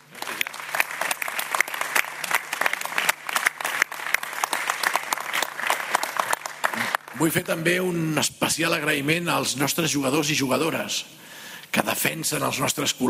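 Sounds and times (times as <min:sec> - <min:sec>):
audience applause: 0:00.0 - 0:07.4
speech: 0:07.2 - 0:13.0.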